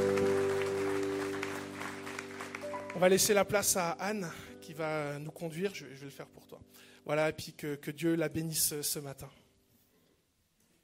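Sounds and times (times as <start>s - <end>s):
church congregation clapping: 0.0s - 3.0s
speech: 3.0s - 9.4s.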